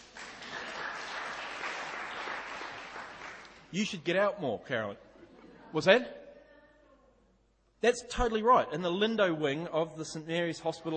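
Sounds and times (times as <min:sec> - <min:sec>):
clapping: 0:00.0 - 0:03.7
speech: 0:03.7 - 0:05.1, 0:05.7 - 0:06.2, 0:07.8 - 0:10.9.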